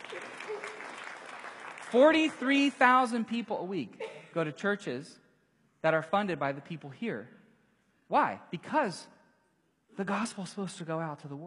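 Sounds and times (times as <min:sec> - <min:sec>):
church audience clapping: 0:00.0 - 0:03.2
speech: 0:01.9 - 0:05.2, 0:05.8 - 0:07.4, 0:08.1 - 0:09.2, 0:10.0 - 0:11.4.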